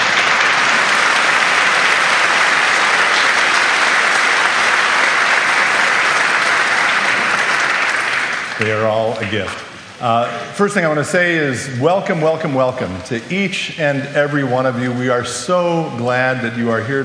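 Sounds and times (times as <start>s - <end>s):
audience applause: 0.0s - 9.6s
speech: 8.6s - 17.0s.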